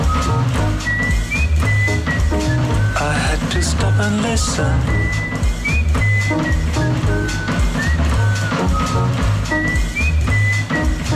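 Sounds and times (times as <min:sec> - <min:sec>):
loud constant rhythmic sound in a crowded bar: 0:00.0 - 0:11.1
person whistling in a crowded bar: 0:00.0 - 0:11.1
speech: 0:04.4 - 0:05.1.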